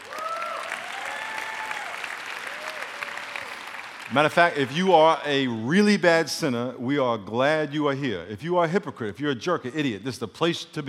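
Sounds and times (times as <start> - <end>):
whoops and cheering voices: 0.0 - 3.8
church congregation clapping: 0.0 - 5.7
speech: 4.1 - 10.8.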